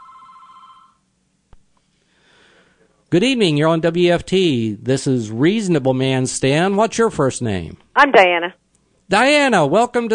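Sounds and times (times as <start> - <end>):
telephone ringing for a call-in radio show caller: 0.0 - 1.0
speech: 3.1 - 10.1.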